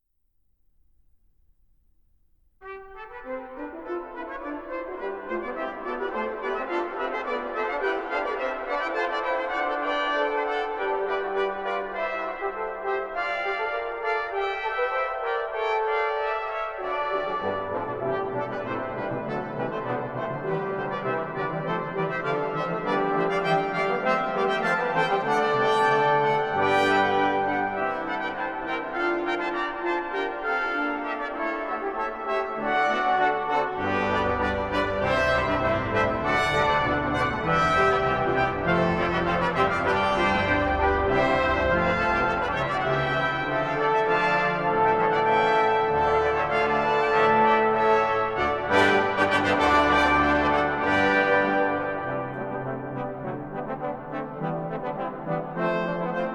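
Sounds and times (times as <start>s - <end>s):
brass ensemble canzona for ten parts: 2.6s - 56.3s.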